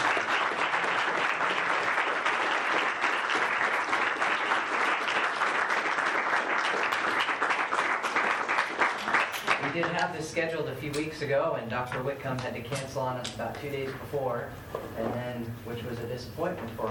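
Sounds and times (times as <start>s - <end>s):
audience applause: 0.0s - 10.0s
speech: 9.9s - 16.9s.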